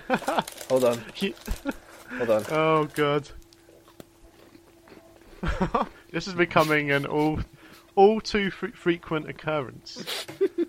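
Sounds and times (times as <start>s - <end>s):
steady low hum: 0.0s - 10.6s
speech: 0.1s - 3.4s, 5.4s - 10.4s
chewing food near the microphone: 3.4s - 5.4s.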